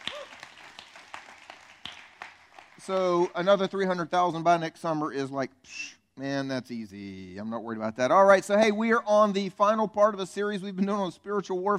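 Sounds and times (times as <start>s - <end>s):
high whoop: 0.0s - 0.5s
audience clapping: 0.0s - 3.8s
speech: 2.8s - 11.7s.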